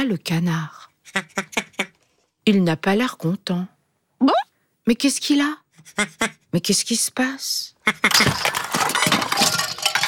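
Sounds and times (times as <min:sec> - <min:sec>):
speech: 0:00.0 - 0:01.8, 0:02.4 - 0:08.6
toys and small objects knocked over and tumbling down: 0:08.0 - 0:10.0.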